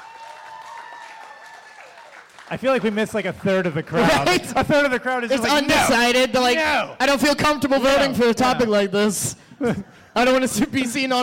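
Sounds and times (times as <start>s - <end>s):
audience applause: 0.0s - 4.4s
speech: 2.5s - 11.2s.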